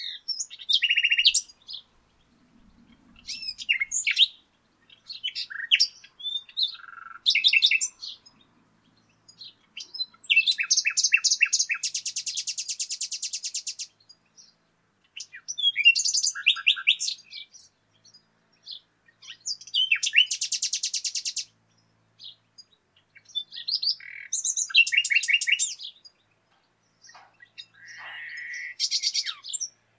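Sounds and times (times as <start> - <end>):
Common nightingale Luscinia megarhynchos singing: 0.0 - 29.9.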